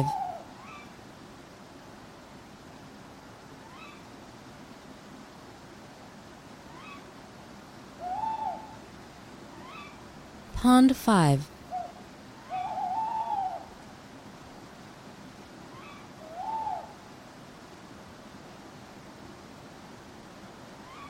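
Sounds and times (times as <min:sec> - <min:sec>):
speech: 0:00.0 - 0:00.2, 0:10.6 - 0:11.5
owl hooting: 0:00.0 - 0:01.0, 0:03.6 - 0:04.1, 0:06.7 - 0:07.1, 0:07.9 - 0:08.9, 0:09.5 - 0:10.1, 0:11.6 - 0:13.8, 0:15.7 - 0:17.0, 0:20.8 - 0:21.0.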